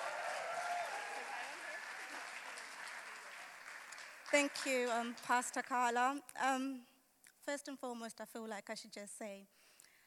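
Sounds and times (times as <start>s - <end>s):
church congregation applauding to welcome a speaker: 0.0s - 5.6s
speech: 4.3s - 9.7s.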